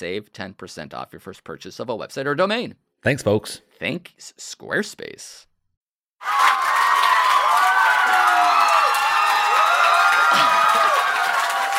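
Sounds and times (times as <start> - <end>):
speech: 0.0 - 5.5, 6.2 - 6.6
crowd applause and cheering: 6.2 - 11.7.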